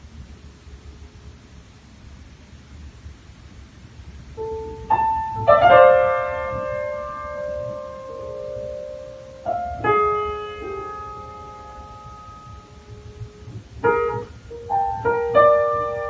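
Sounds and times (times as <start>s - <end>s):
piano piece: 4.4s - 16.0s.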